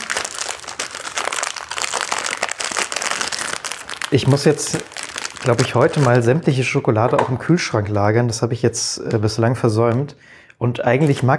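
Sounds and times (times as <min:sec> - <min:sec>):
cookie package plastic wrapper crinkling as it is pulled open: 0:00.0 - 0:06.6, 0:11.0 - 0:11.3
speech: 0:04.1 - 0:11.3.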